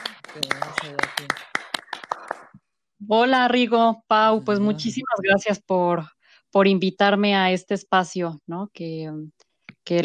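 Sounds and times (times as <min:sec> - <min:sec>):
audience applause: 0:00.0 - 0:02.5
speech: 0:00.4 - 0:01.5, 0:03.0 - 0:10.0.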